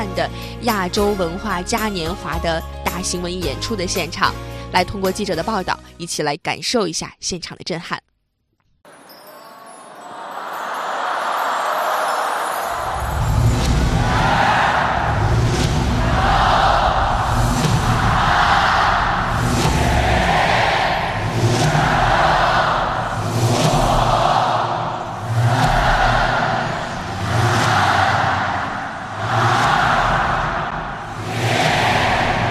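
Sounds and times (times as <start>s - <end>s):
speech: 0.2s - 8.1s
stadium audience counting down in unison: 9.9s - 32.4s.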